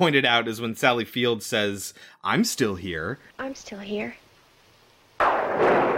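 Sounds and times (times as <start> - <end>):
speech: 0.0 - 4.2
thunder in a movie scene: 5.2 - 5.9.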